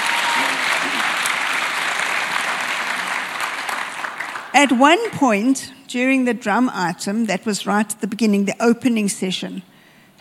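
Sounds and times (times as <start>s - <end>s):
audience applause: 0.0s - 4.6s
speech: 4.6s - 10.1s.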